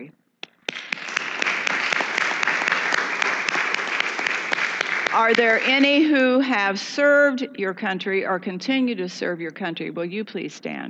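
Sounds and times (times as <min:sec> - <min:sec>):
audience applause: 0:00.6 - 0:06.0
speech: 0:05.2 - 0:10.8.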